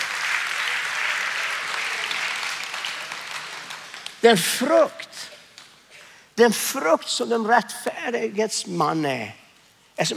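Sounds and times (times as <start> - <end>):
audience applause: 0.0 - 4.2
speech: 4.2 - 5.3, 6.4 - 9.4, 10.0 - 10.1.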